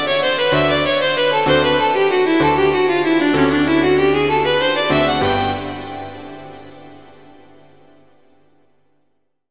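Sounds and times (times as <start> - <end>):
violin: 0.0 - 7.5
piano: 0.0 - 9.1.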